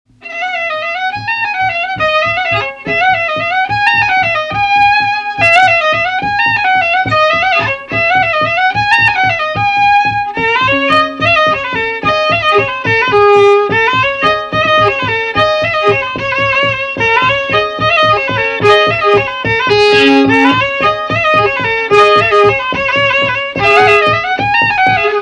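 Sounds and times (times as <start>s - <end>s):
baroque dance piece: 0.2s - 25.2s.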